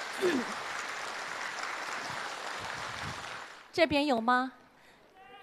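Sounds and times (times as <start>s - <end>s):
audience applause: 0.0s - 3.7s
speech: 0.2s - 0.6s, 3.8s - 4.6s.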